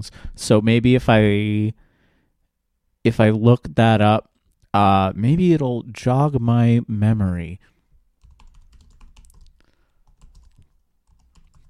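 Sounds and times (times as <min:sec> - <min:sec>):
speech: 0:00.0 - 0:01.8, 0:03.0 - 0:07.7
fast computer keyboard typing: 0:08.2 - 0:11.6.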